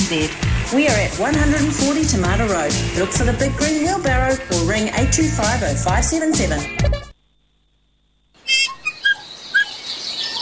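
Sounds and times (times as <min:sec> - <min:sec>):
speech: 0:00.1 - 0:07.0
native birdsong chirps and whistles: 0:08.4 - 0:10.4.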